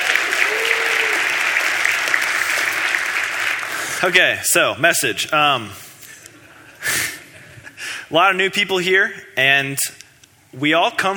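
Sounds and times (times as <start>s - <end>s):
audience round of applause: 0.0s - 4.1s
speech: 4.0s - 5.8s, 8.1s - 10.0s, 10.6s - 11.1s.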